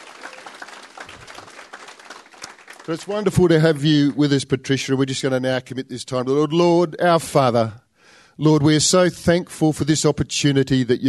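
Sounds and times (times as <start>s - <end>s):
audience applause welcoming a guest speaker at a church morning gathering: 0.0s - 4.0s
speech: 2.9s - 7.8s, 8.4s - 11.0s.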